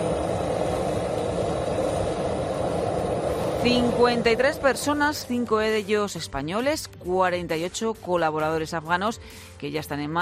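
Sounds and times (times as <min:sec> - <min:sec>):
evacuation plane from Afghanistan landing at Torrejón de Ardoz air base: 0:00.0 - 0:05.6
speech: 0:03.6 - 0:10.1.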